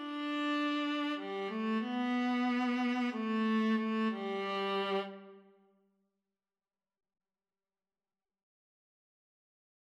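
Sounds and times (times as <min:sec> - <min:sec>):
viola: 0:00.0 - 0:05.5.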